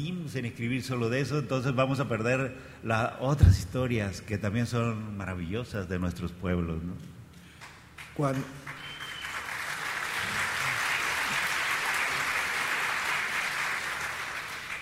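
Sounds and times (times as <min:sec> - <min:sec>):
speech: 0:00.0 - 0:07.1, 0:08.2 - 0:08.7
audience ovation applause: 0:08.0 - 0:14.8.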